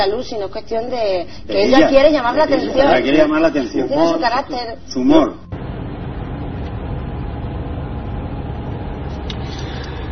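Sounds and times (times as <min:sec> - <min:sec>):
speech: 0:00.0 - 0:05.5
car engine running while driving: 0:05.5 - 0:10.1.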